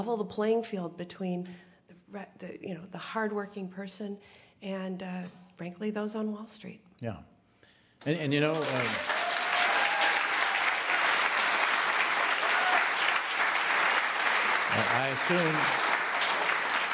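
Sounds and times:
speech: 0:00.0 - 0:07.3, 0:08.0 - 0:09.1, 0:15.0 - 0:15.9
audience applause: 0:08.2 - 0:16.9.

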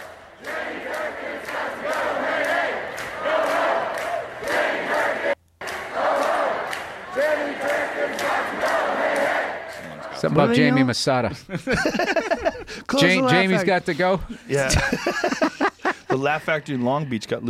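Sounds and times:
protest crowd yelling and chanting: 0:00.0 - 0:10.8
laughter: 0:09.9 - 0:16.6
speech: 0:10.2 - 0:17.4.

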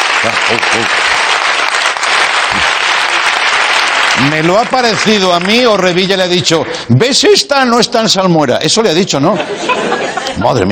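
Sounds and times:
applause for the president: 0:00.0 - 0:07.2
speech: 0:00.2 - 0:01.1, 0:04.2 - 0:10.6
laughter: 0:09.2 - 0:10.6.

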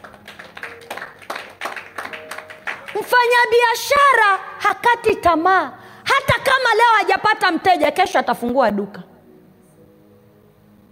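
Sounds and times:
audience clapping for business people: 0:00.0 - 0:03.4
speech: 0:03.0 - 0:09.0.

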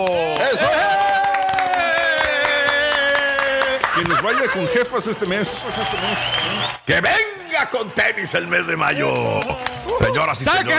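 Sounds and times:
speech: 0:00.0 - 0:00.8, 0:04.0 - 0:10.7
loud applause: 0:00.0 - 0:10.7
laughter: 0:00.4 - 0:06.6, 0:08.9 - 0:10.4.

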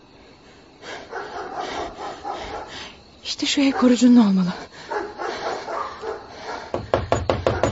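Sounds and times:
dogs barking and growling at a farm: 0:00.8 - 0:02.9, 0:03.6 - 0:06.9
speech: 0:03.3 - 0:04.7
sharp knocks: 0:06.7 - 0:07.7.

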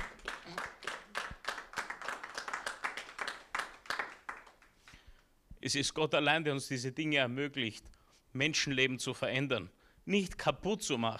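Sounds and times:
audience applause: 0:00.0 - 0:04.7
speech: 0:05.6 - 0:11.1.

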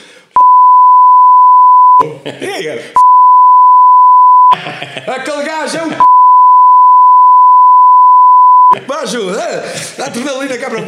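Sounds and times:
censor bleep tone: 0:00.4 - 0:02.0, 0:03.0 - 0:04.6, 0:06.0 - 0:08.8
laughter: 0:02.0 - 0:02.8, 0:04.5 - 0:06.1
speech: 0:02.0 - 0:03.0, 0:04.6 - 0:06.1, 0:08.7 - 0:10.8.

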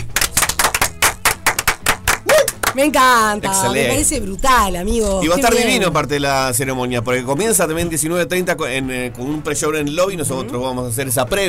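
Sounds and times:
short burst of hand clapping: 0:00.0 - 0:03.2
speech: 0:02.8 - 0:11.4.

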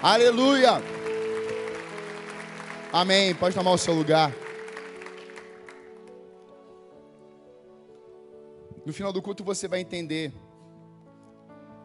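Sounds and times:
speech: 0:00.0 - 0:00.9, 0:02.9 - 0:04.4, 0:08.8 - 0:10.5
church audience applause: 0:00.0 - 0:06.1.

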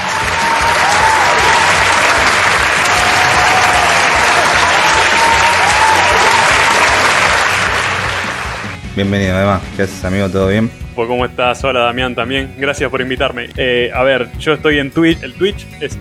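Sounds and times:
audience applause: 0:00.0 - 0:08.8
speech: 0:09.0 - 0:16.0.

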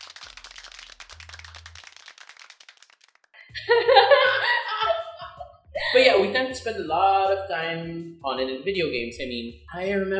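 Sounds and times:
applause: 0:00.0 - 0:03.4
speech: 0:03.5 - 0:04.4, 0:06.0 - 0:10.1
laughter: 0:03.6 - 0:06.0.

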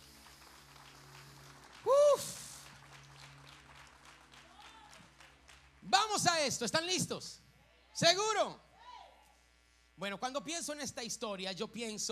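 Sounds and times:
audience applauding: 0:00.0 - 0:06.4
speech: 0:06.0 - 0:07.4, 0:08.0 - 0:08.6, 0:10.0 - 0:12.1.

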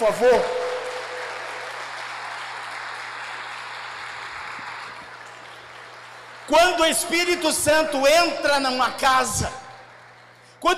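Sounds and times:
speech: 0:00.0 - 0:00.6, 0:06.5 - 0:09.6, 0:10.6 - 0:10.7
audience applause: 0:00.0 - 0:06.9.

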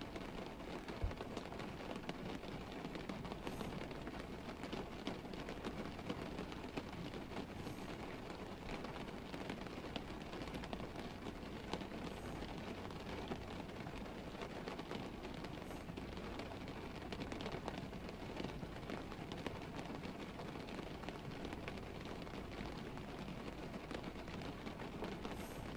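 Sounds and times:
dense steady rain at night: 0:00.0 - 0:25.7.

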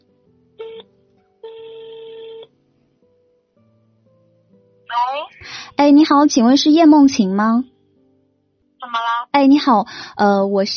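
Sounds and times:
telephone ringing: 0:00.6 - 0:02.5
speech: 0:05.0 - 0:07.7, 0:09.4 - 0:10.7.

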